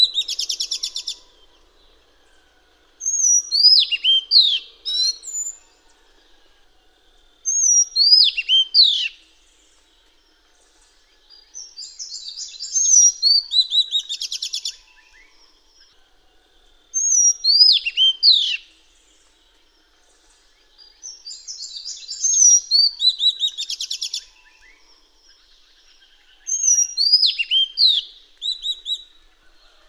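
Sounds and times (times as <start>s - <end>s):
Madagascar magpie-robin singing: 3.0s - 5.6s, 7.5s - 9.2s, 11.6s - 14.8s, 17.0s - 18.6s, 21.1s - 24.3s, 26.4s - 29.1s.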